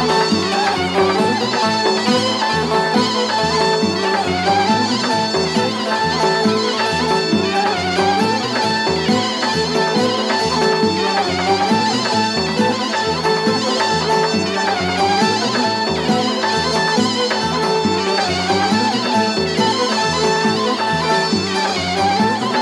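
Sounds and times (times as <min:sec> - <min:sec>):
bass: 0:00.0 - 0:22.6.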